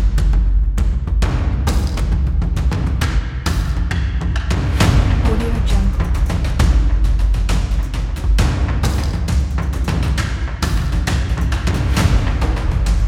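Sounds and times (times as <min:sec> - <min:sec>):
cinematic drums: 0:00.0 - 0:13.0.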